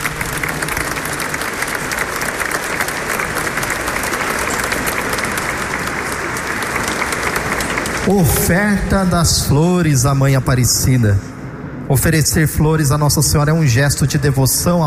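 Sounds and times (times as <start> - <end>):
audience applause: 0.0 - 9.0
speech: 8.1 - 11.3, 11.9 - 14.8.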